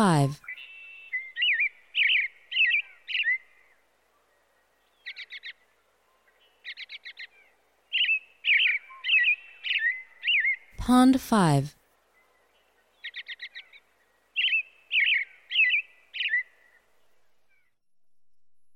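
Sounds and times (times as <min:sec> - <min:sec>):
speech: 0:00.0 - 0:00.4, 0:10.9 - 0:11.8
American robin whistled song: 0:00.4 - 0:03.4, 0:07.9 - 0:10.7, 0:14.4 - 0:16.6.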